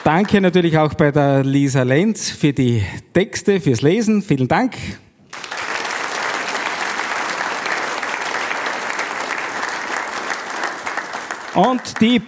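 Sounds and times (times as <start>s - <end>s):
applause: 0.0s - 0.8s, 5.3s - 12.2s
speech: 0.0s - 5.0s, 11.6s - 12.2s.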